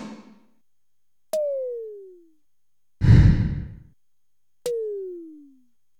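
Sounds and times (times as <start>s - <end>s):
Zoom MRT-3 drum machine: 1.4s - 2.3s, 4.7s - 5.5s.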